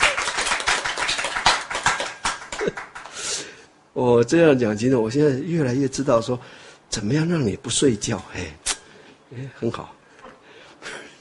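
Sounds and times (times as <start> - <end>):
audience clapping hands: 0.0 - 3.2
speech: 2.6 - 2.9, 4.0 - 8.7, 9.3 - 10.0.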